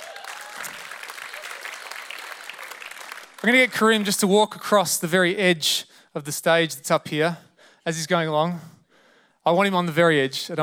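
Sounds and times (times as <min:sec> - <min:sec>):
voices cheering: 0:00.0 - 0:02.6
audience applause: 0:00.0 - 0:04.1
speech: 0:03.4 - 0:08.8, 0:09.4 - 0:10.6.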